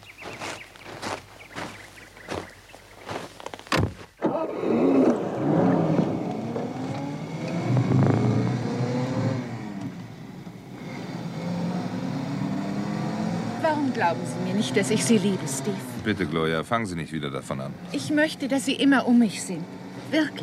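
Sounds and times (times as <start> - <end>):
car driving off: 3.8 - 20.4
speech: 14.0 - 20.4.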